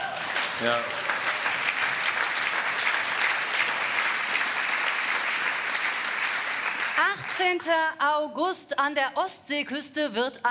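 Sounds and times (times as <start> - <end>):
applause: 0.0 - 7.7
speech: 0.6 - 1.0, 7.0 - 10.4.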